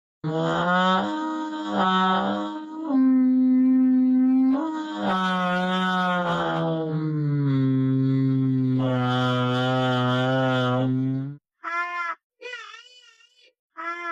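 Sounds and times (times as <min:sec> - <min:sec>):
ASMR sounds: 0:00.3 - 0:11.4.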